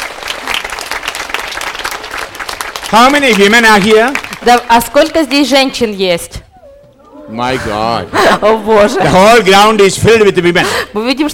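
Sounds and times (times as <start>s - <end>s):
women in the crowd clapping for the Lord at a religious gathering in Belarus: 0.0s - 5.4s
speech: 2.9s - 6.4s, 7.3s - 11.3s
laughter: 7.1s - 9.6s.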